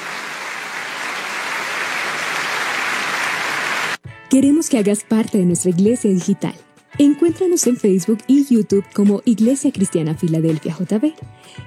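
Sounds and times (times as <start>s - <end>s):
audience applause: 0.0s - 4.0s
speech: 4.3s - 11.6s.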